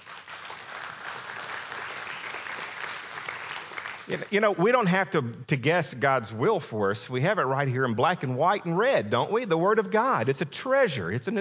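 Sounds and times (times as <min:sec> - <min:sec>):
audience applauding: 0:00.0 - 0:04.3
speech: 0:04.1 - 0:11.3.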